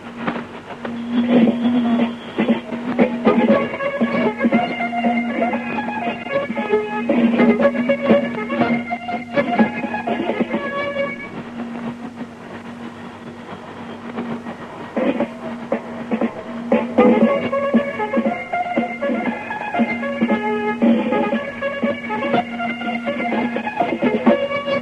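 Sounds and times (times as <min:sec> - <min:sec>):
drums: 0:00.0 - 0:24.8.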